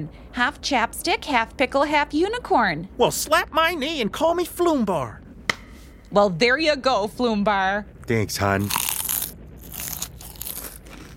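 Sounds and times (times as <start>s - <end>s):
speech: 0.0s - 5.2s, 6.1s - 8.9s
teeth biting into a hard taco shell: 8.6s - 11.1s.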